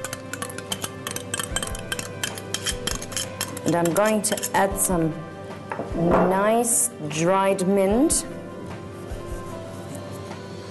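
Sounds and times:
ice cubes clinking in a pot: 0.0 - 4.6
speech: 3.6 - 5.3, 6.0 - 8.4.

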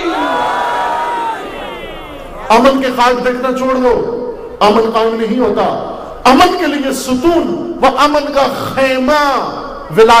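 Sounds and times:
crowd shouting a unison response to a religious chant call: 0.0 - 2.5
speech: 2.5 - 10.1.

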